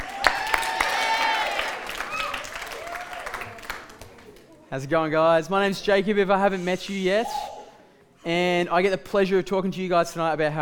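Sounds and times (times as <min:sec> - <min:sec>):
cheering and whoops: 0:00.0 - 0:03.6
audience applause: 0:00.0 - 0:04.5
speech: 0:04.7 - 0:07.5, 0:08.2 - 0:10.6.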